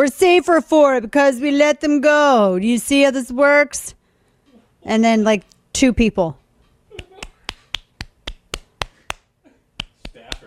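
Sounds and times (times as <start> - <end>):
speech: 0.0 - 4.0, 4.8 - 6.4
sparse clapping: 7.0 - 10.4.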